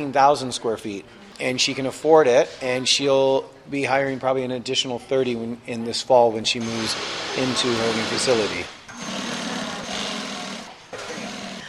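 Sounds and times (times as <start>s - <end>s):
speech: 0.0s - 8.7s
sewing machine stitching coats that convert into sleeping bags: 6.6s - 11.6s.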